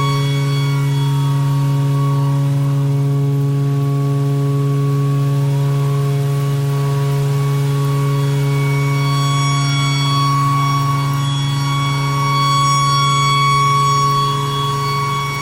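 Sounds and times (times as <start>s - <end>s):
tornado siren: 0.0s - 15.4s.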